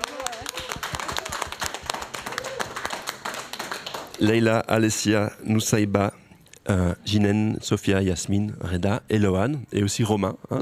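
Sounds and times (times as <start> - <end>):
audience applause: 0.0 - 4.3
speech: 4.2 - 10.5.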